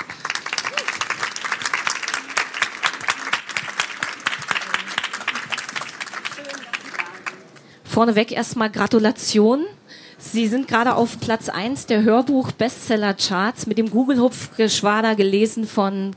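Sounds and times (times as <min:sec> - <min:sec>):
audience applause: 0:00.0 - 0:07.7
speech: 0:08.0 - 0:16.1.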